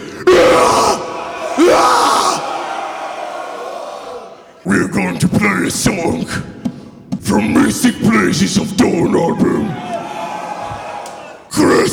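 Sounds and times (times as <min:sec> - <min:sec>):
concert crowd screaming: 0:00.3 - 0:04.5, 0:09.2 - 0:11.6
voices shouting: 0:00.4 - 0:04.5, 0:09.3 - 0:11.5
speech: 0:04.7 - 0:06.6, 0:07.3 - 0:09.9.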